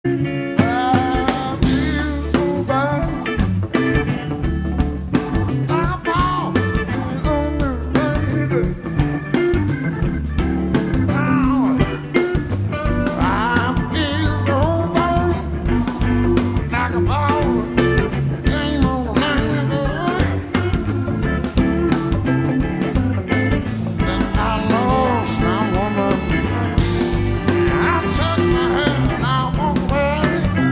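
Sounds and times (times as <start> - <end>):
funk blues music in D: 0.0 - 30.7.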